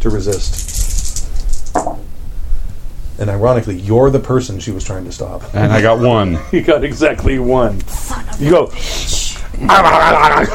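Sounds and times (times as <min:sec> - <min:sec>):
speech: 0:00.0 - 0:00.9, 0:03.2 - 0:10.5
low hum: 0:00.0 - 0:10.5
dice rattling in a hand and landing: 0:00.3 - 0:02.0
laughter: 0:05.4 - 0:07.1, 0:09.5 - 0:10.5.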